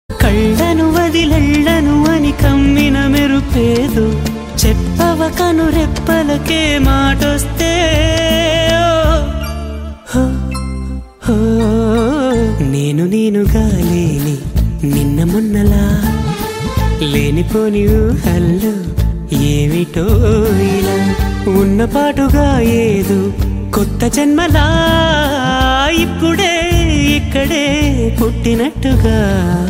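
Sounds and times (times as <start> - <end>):
Telugu song: 0.1 - 29.6.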